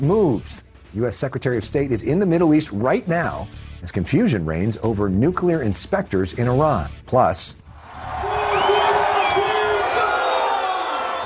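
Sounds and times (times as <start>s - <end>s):
speech: 0.0s - 8.2s
football fans cheering a Portugal World Cup goal against Uzbekistan: 7.8s - 11.2s.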